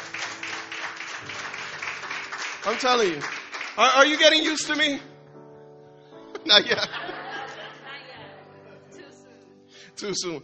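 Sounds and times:
crowd giving a round of applause: 0.0s - 4.7s
speech: 2.6s - 5.1s, 6.5s - 7.1s, 10.0s - 10.4s
laughter: 6.3s - 8.4s.

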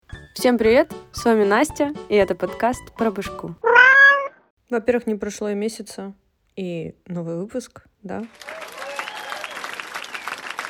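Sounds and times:
speech: 0.4s - 3.7s, 4.7s - 8.6s
audience applause: 8.3s - 10.6s.

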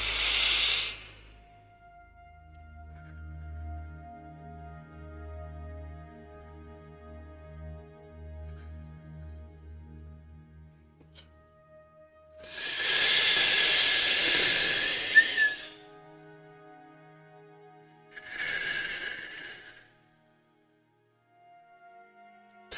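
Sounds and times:
deep mouth breathing: 0.0s - 1.5s, 12.4s - 15.8s, 18.0s - 20.0s.

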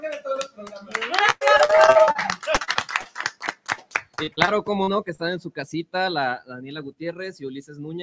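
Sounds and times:
applause: 0.0s - 4.6s
speech: 4.2s - 8.0s.

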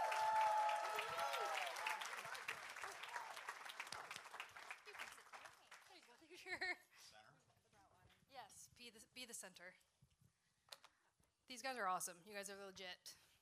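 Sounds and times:
cheers and whoops: 0.0s - 4.0s
audience round of applause: 0.0s - 6.2s
speech: 8.8s - 9.9s, 11.5s - 13.2s.

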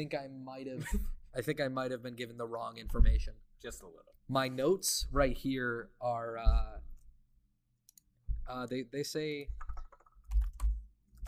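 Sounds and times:
speech: 0.0s - 6.9s, 8.5s - 9.7s
typing on a computer keyboard: 9.5s - 11.2s.

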